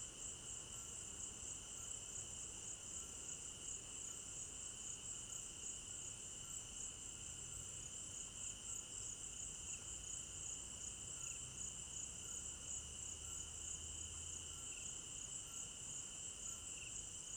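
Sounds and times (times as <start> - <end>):
night crickets chirping in an African village garden: 0.5 - 17.3.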